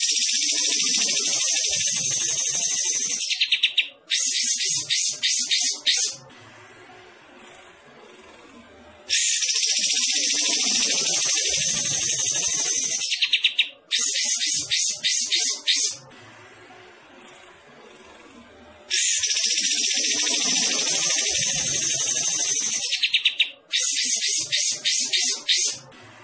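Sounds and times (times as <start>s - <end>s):
bulbul singing rapid bright chattering notes: 0.0s - 6.2s, 9.1s - 16.0s, 18.9s - 25.8s.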